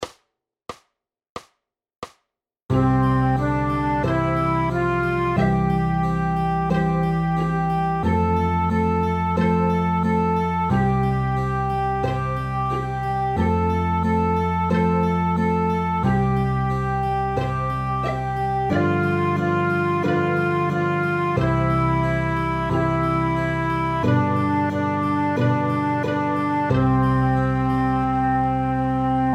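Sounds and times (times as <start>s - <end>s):
children's song playalong: 2.8s - 29.3s.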